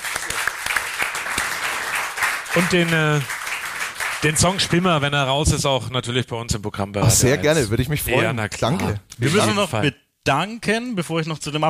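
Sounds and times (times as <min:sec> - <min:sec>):
audience applause: 0:00.0 - 0:05.1
speech: 0:02.6 - 0:03.3, 0:04.2 - 0:11.6.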